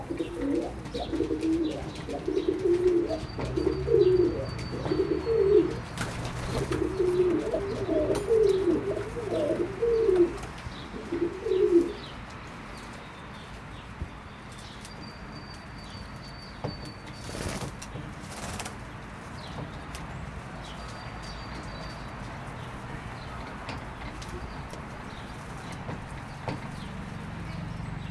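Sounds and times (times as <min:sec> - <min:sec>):
pigeons cooing: 0:00.0 - 0:12.1.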